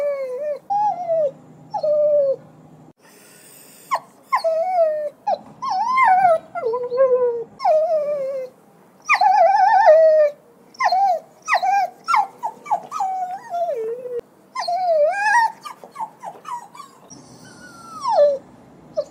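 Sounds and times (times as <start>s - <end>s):
dog whimpering: 0.0s - 2.4s, 3.8s - 19.1s.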